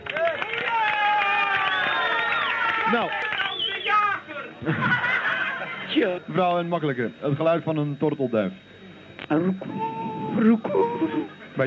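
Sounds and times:
crowd clapping and cheering: 0.0 - 4.0
whoops and raised voices: 0.6 - 4.1, 9.6 - 11.3
speech: 2.9 - 3.3, 4.6 - 5.1, 6.0 - 8.7, 9.3 - 11.6
laughter: 4.4 - 6.3, 9.8 - 11.6.

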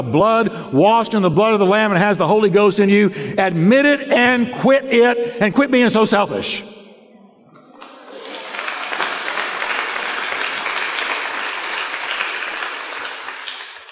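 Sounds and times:
speech: 0.0 - 6.7
tepid audience clapping: 7.6 - 13.9.

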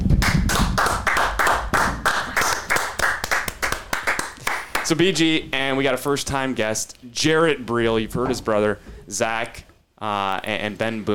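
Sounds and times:
hands clapping: 0.0 - 5.0
speech: 4.9 - 11.1.

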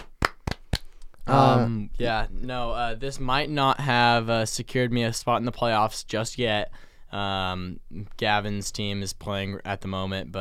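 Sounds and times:
hand clapping: 0.0 - 1.0
speech: 1.3 - 10.3.

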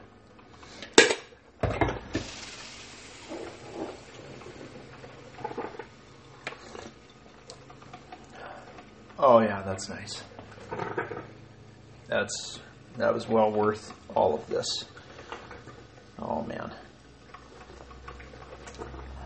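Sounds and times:
Kiambu Kenyan coffee pouring into a cup: 1.6 - 11.6, 12.4 - 19.2
speech: 9.2 - 10.3, 12.1 - 14.9.

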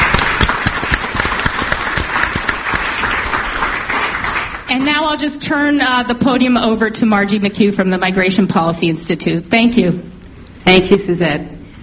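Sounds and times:
audience applause: 0.0 - 4.8
speech: 4.7 - 11.6.

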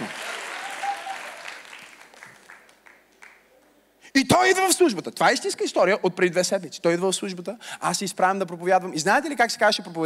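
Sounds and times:
audience clapping: 0.0 - 3.6
speech: 4.2 - 10.0.

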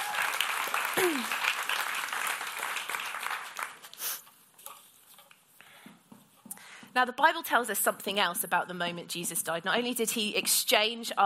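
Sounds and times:
sliding cheer or whoop from the crowd: 0.0 - 1.3
audience applauding: 0.0 - 4.0
speech: 7.0 - 11.2.

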